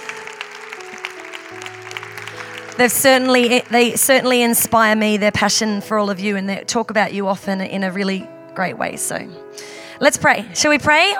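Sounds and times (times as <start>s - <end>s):
audience applause: 0.0s - 5.2s
speech: 2.8s - 11.1s.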